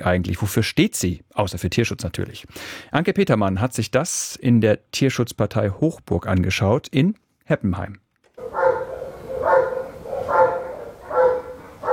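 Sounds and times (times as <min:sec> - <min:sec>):
speech: 0:00.0 - 0:08.0
Belgian shepherd dog barking in kennel: 0:08.4 - 0:11.9.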